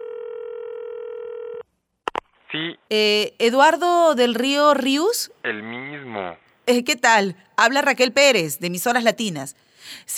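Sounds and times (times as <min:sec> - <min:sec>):
telephone dial tone: 0:00.0 - 0:01.6
speech: 0:02.5 - 0:10.1.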